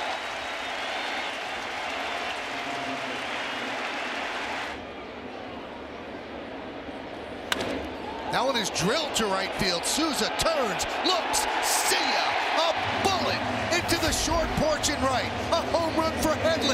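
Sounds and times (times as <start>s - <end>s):
stadium crowd ovation: 0.0s - 4.8s, 8.0s - 16.1s
speech: 8.3s - 16.7s.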